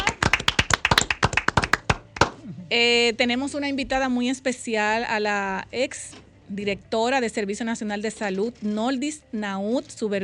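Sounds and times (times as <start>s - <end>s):
small group applause: 0.0s - 2.4s
speech: 2.7s - 10.2s.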